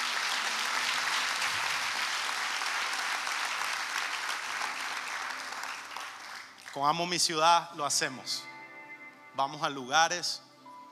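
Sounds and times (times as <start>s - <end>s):
audience applause: 0.0s - 6.8s
speech: 6.8s - 8.5s, 9.4s - 10.4s.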